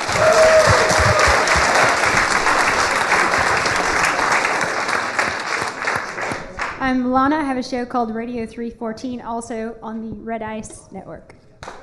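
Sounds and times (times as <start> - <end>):
round of applause: 0.0 - 6.8, 11.6 - 11.8
speech: 6.9 - 11.4.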